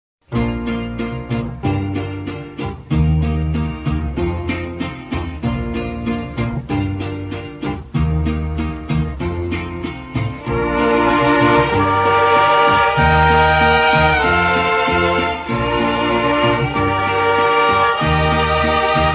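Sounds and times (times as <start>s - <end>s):
mariachi hallelujah from a mass: 0.2s - 19.1s.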